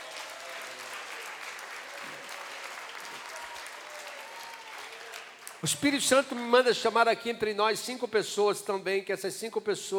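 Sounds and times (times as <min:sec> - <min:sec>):
faint voices and cheers: 0:00.0 - 0:05.2
audience applause: 0:00.0 - 0:05.6
speech: 0:05.6 - 0:09.9.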